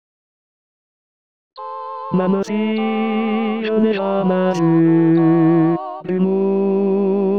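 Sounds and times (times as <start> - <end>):
tenor voice singing tango with accompaniment: 2.1 - 7.2.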